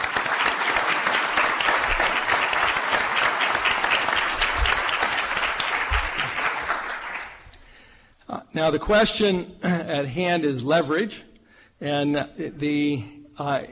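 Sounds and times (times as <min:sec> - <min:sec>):
round of applause: 0:00.0 - 0:07.8
speech: 0:08.6 - 0:13.7.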